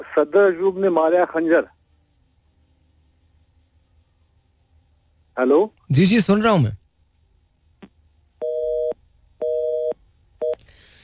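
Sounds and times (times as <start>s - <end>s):
speech: 0.0s - 1.8s, 5.4s - 6.8s
phone busy tone: 8.4s - 10.6s.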